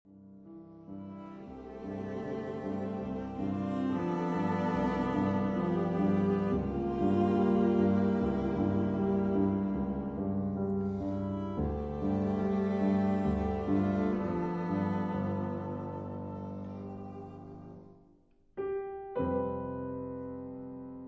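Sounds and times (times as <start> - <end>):
piano quartet: 0.1 - 21.0.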